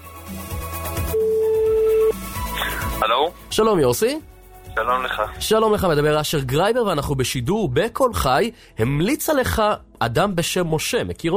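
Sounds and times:
telephone line tone while dialing a radio listener: 1.2 - 2.2
speech: 3.2 - 11.3.

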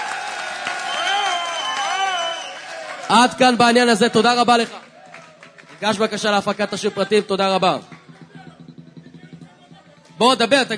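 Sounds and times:
audience applause: 0.0 - 8.1
speech: 3.1 - 4.8, 5.8 - 8.0, 10.2 - 10.7.

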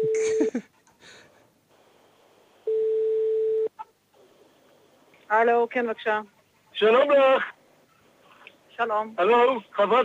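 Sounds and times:
ringing tone of an unanswered call from a mobile phone: 2.7 - 3.7
speech: 5.3 - 7.6, 8.8 - 10.0.

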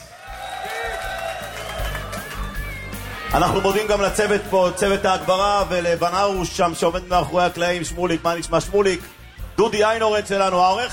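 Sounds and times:
audience applause: 0.0 - 6.0
cheers and shouts: 0.0 - 6.3
speech: 3.3 - 10.9.

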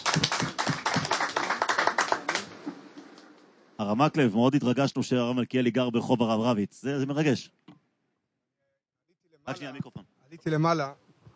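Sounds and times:
audience applause: 0.0 - 2.8
speech: 3.9 - 7.6, 9.5 - 11.0.

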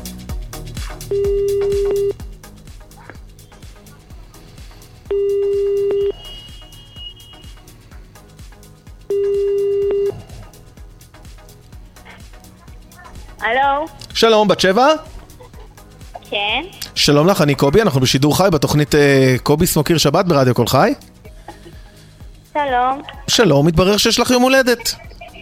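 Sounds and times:
telephone ringing tone: 1.1 - 2.2, 5.1 - 7.1, 9.1 - 10.1
speech: 14.2 - 15.1, 17.1 - 21.1, 22.5 - 25.1.

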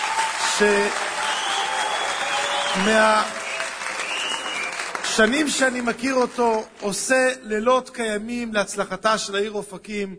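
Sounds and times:
audience applause for a deputy mayor: 0.0 - 7.0
speech: 0.6 - 1.1, 2.8 - 3.4, 5.2 - 10.1.

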